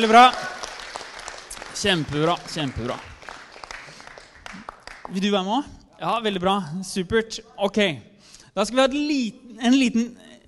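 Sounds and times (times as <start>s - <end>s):
speech: 0.0s - 0.4s, 1.8s - 3.1s, 5.1s - 10.2s
audience applause: 0.0s - 5.2s.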